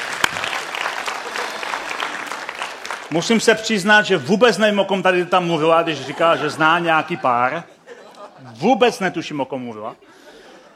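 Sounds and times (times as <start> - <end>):
audience applause for guests and dancers: 0.0 - 3.7
laughter: 1.1 - 2.3, 5.4 - 10.7
speech: 3.1 - 7.7, 8.5 - 10.2.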